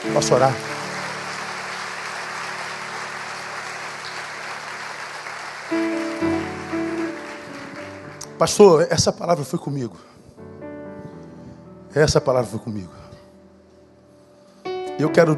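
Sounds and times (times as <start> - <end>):
speech: 0.0 - 0.7, 8.4 - 10.2, 11.9 - 13.0, 15.0 - 15.3
audience applauding loudly: 0.0 - 8.7.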